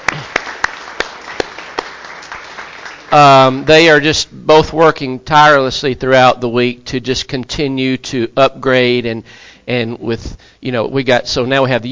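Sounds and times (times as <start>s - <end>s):
small group applauding: 0.0s - 3.3s
speech: 3.1s - 11.8s.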